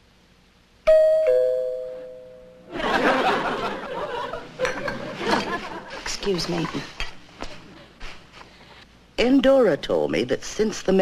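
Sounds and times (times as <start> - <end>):
two-tone doorbell chime: 0.9 - 2.7
audience laughter: 2.7 - 6.9
speech: 6.3 - 7.0, 9.2 - 11.0.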